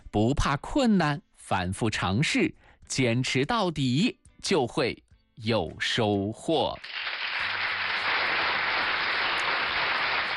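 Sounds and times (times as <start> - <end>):
speech: 0.1 - 7.5
applause: 6.8 - 10.3.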